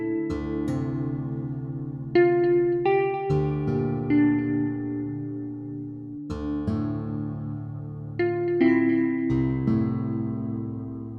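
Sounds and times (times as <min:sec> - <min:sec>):
guitar playing: 0:00.0 - 0:11.1.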